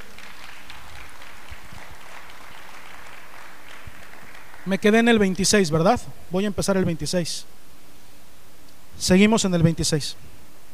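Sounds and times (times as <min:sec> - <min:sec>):
audience clapping: 0:00.0 - 0:05.8
speech: 0:04.7 - 0:07.6, 0:09.0 - 0:10.3.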